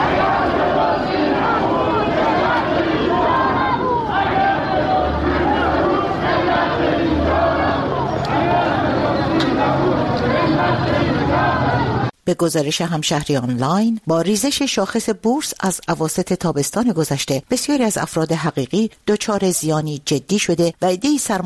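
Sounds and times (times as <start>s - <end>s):
protesting shareholders shouting in a crowd: 0.0s - 12.1s
speech: 12.3s - 21.4s.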